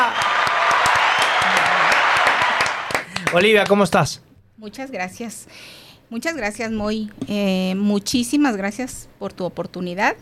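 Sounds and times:
audience applause: 0.0 - 3.9
speech: 3.3 - 10.1.

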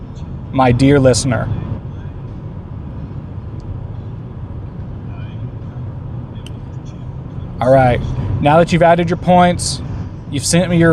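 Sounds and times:
road noise from inside a car being driven: 0.0 - 10.9
speech: 0.5 - 1.6, 7.6 - 10.9.

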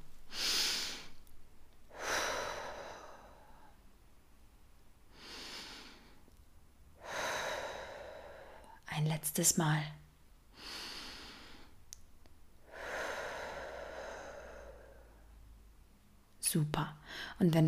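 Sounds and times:
deep slow breathing during a guided relaxation body scan: 1.9 - 3.8, 5.1 - 6.2, 7.0 - 8.8, 10.5 - 11.8, 12.6 - 15.5
speech: 9.2 - 10.0, 16.5 - 17.6.

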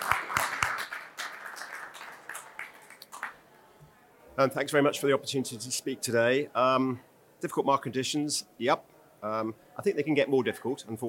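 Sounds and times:
small audience applause: 0.0 - 3.4
speech: 4.4 - 11.0.

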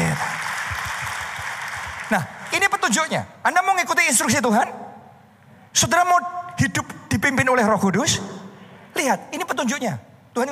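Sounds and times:
audience applause: 0.0 - 2.8
speech: 2.1 - 4.8, 5.8 - 8.4, 9.0 - 10.5.

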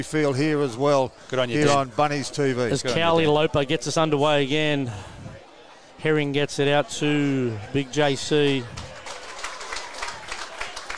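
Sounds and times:
speech: 0.0 - 5.2, 6.0 - 8.9
crowd noise: 0.0 - 10.9
crowd applauding at a rugby ground: 8.1 - 10.9.

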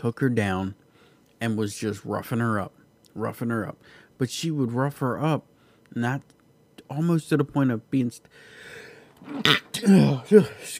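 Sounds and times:
speech: 0.0 - 0.8, 1.4 - 10.7
person sneezing: 9.2 - 10.5
person murmuring: 9.2 - 10.7.

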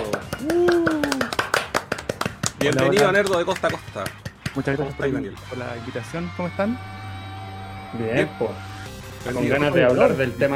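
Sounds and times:
small group applause: 0.0 - 4.7
drawn-out vocal whoop: 0.4 - 1.3
speech: 2.6 - 7.0, 7.9 - 10.5.

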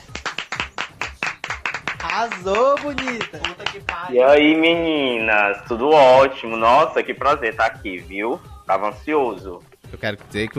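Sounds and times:
applause for a guest: 0.0 - 4.2
speech: 2.2 - 10.5.

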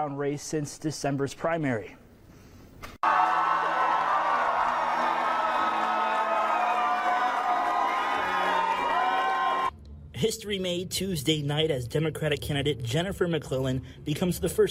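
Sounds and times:
speech: 0.0 - 2.0, 10.2 - 14.6
crowd cheering at election celebration: 3.0 - 9.7.

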